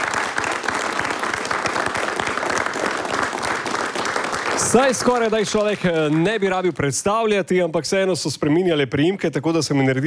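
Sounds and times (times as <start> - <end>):
large audience applause: 0.0 - 6.7
speech: 4.7 - 10.0.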